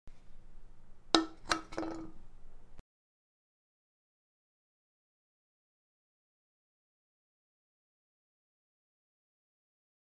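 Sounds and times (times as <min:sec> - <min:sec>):
empty can set down: 0:01.2 - 0:02.2.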